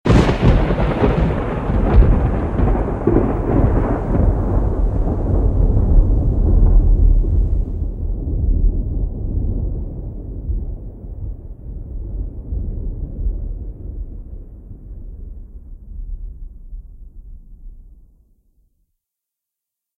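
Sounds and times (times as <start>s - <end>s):
thunder: 0.1s - 18.2s.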